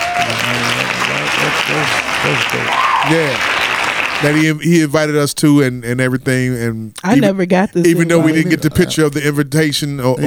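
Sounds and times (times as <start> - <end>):
hand claps: 0.0 - 4.4
laughter: 0.0 - 4.6, 7.1 - 10.2
speech: 1.7 - 3.6, 4.2 - 10.2.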